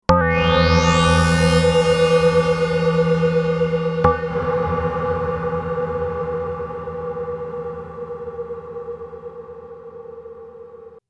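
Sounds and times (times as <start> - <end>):
Korg NTS-1 synthesizer with hall reverb: 0.2 - 11.0.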